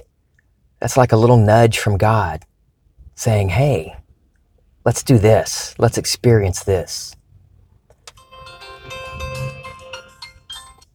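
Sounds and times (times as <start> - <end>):
speech: 0.8 - 2.5, 3.2 - 4.0, 4.8 - 7.2
phone ringtone jingle: 8.2 - 10.9.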